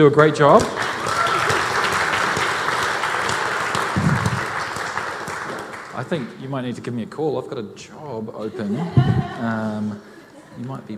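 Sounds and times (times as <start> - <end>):
speech: 0.0 - 0.9, 6.1 - 10.9
audience applause: 0.7 - 6.4
laughter: 8.4 - 10.9.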